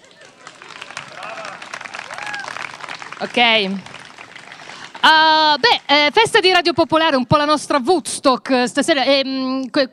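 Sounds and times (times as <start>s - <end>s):
audience applause: 0.0s - 6.1s
speech: 3.2s - 3.9s, 5.0s - 9.9s.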